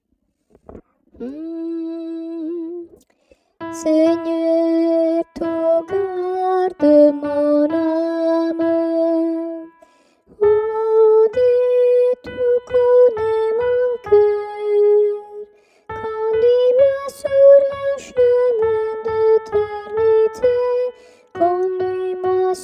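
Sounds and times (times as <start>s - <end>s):
soprano singing: 1.2s - 3.0s, 3.6s - 22.6s.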